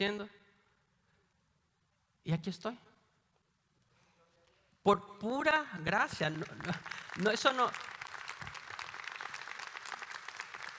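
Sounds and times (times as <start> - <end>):
speech: 0.0 - 0.4, 2.2 - 2.9, 4.8 - 7.9
audience applause: 6.2 - 10.7.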